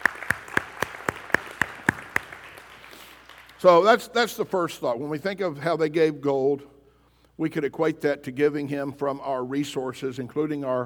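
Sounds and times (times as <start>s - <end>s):
audience clapping hands: 0.0s - 3.8s
speech: 3.6s - 6.7s, 7.4s - 10.8s.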